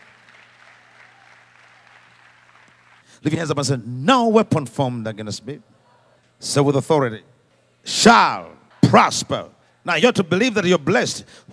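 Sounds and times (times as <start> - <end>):
audience clapping hands: 0.0 - 3.2
speech: 3.2 - 5.7, 6.4 - 11.5.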